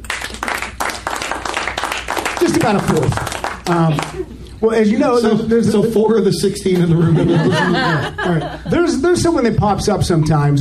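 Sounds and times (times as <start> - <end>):
small audience round of applause: 0.0 - 4.3
speech: 2.6 - 10.6
laughter: 5.2 - 9.1.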